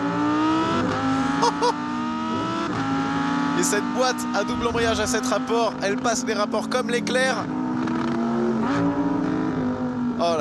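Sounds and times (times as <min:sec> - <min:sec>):
naturally aspirated V10 engine, 610 hp: 0:00.0 - 0:10.3
speech: 0:03.6 - 0:07.6, 0:10.2 - 0:10.3.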